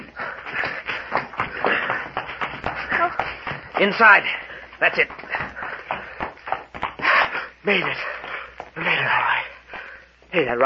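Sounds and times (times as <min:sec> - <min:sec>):
footsteps of people running into a cave in a radio drama: 0:00.0 - 0:10.3
speech: 0:03.8 - 0:05.2, 0:07.7 - 0:08.2, 0:08.8 - 0:09.4, 0:10.3 - 0:10.6.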